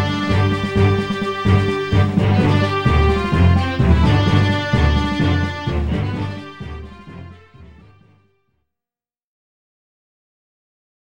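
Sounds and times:
synthesizer: 0.0s - 8.3s.

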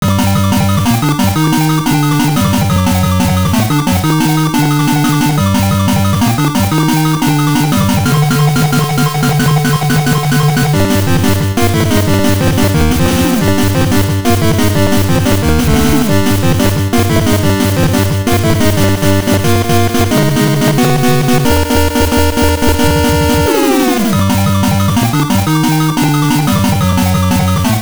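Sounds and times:
boss fight music: 0.0s - 27.8s.

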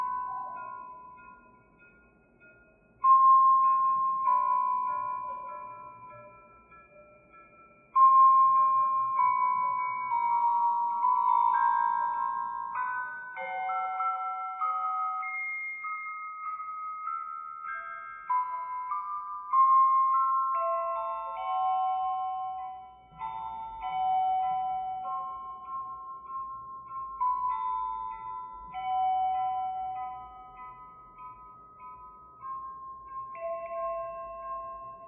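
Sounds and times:
music box ambience: 0.0s - 35.0s.

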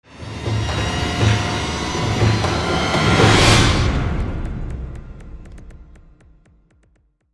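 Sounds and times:
string swell: 0.1s - 5.9s.

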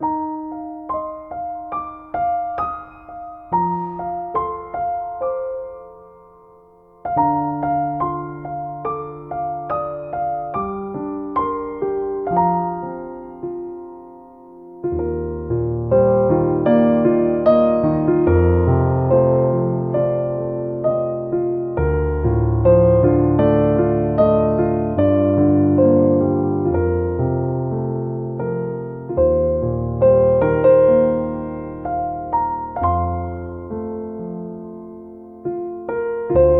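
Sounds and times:
piano playing: 0.0s - 36.5s.

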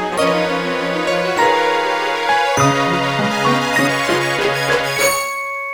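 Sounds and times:
startup sound: 0.2s - 5.5s.

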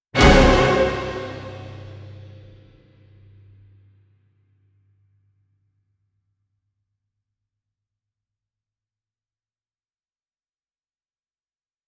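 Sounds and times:
orchestral hit: 0.2s - 2.7s.

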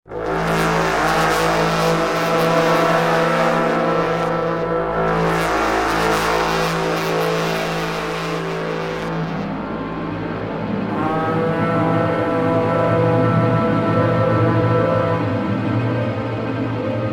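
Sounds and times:
horns of battle: 0.1s - 17.0s.

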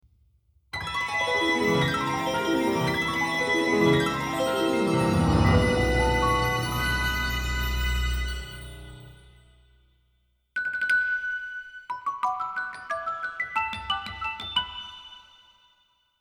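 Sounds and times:
wind marimba: 1.0s - 8.3s, 11.9s - 15.3s.

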